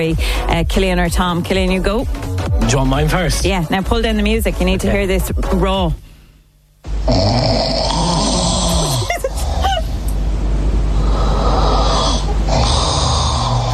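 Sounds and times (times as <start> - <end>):
speech: 0.0 - 6.0, 7.1 - 7.5
person snoring loudly: 6.9 - 10.0, 10.9 - 13.7.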